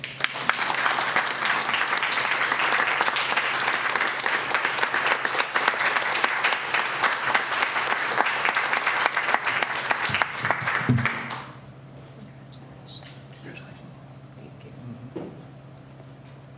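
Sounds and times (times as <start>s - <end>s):
audience applause at a human rights awards breakfast for an award winner: 0.0s - 11.6s.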